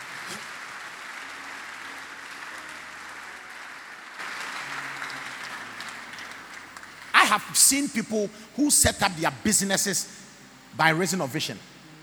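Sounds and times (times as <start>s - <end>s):
crowd clapping: 0.0s - 8.0s
speech: 7.3s - 10.2s, 10.8s - 11.7s.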